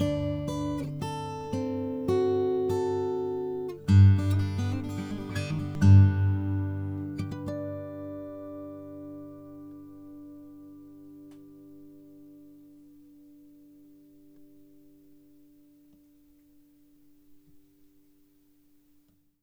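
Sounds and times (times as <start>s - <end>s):
micro guitar: 0.0s - 15.4s.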